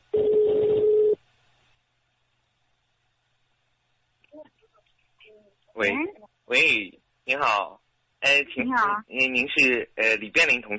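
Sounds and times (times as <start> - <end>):
telephone ringing tone: 0.2 - 1.2
speech: 5.8 - 10.7.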